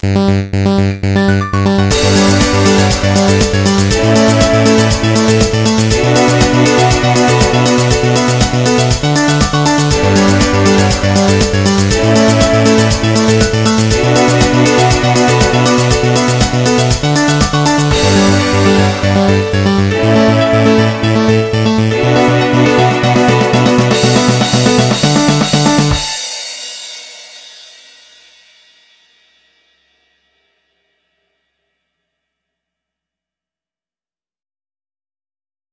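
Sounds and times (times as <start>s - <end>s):
Nokia mellow nocturnal ringtone: 1.0s - 26.2s.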